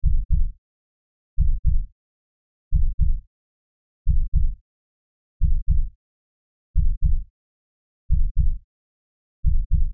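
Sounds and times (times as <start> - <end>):
heartbeat: 0.0 - 0.5, 1.4 - 1.9, 2.7 - 3.2, 4.1 - 4.6, 5.4 - 5.9, 6.8 - 7.3, 8.1 - 8.6, 9.4 - 9.9.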